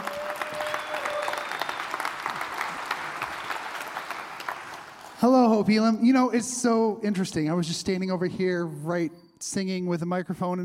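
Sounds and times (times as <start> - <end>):
audience applauding: 0.0 - 5.6
speech: 5.2 - 10.6.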